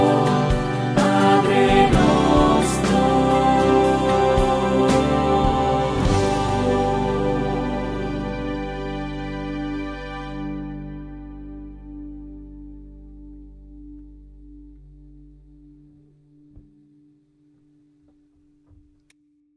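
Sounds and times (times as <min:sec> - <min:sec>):
alto and tenor voices singing a prayer in Italian: 0:00.0 - 0:09.2.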